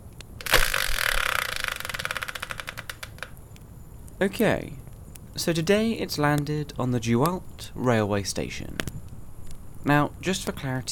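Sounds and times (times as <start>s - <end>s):
Wheel of Fortune style prize wheel spinner turning: 0.5s - 3.1s
speech: 4.2s - 4.8s, 5.4s - 8.9s, 9.8s - 10.9s.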